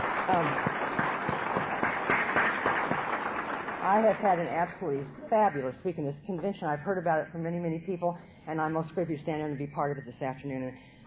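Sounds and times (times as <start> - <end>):
audience applause: 0.0 - 5.0
speech: 0.3 - 0.8, 3.9 - 11.0.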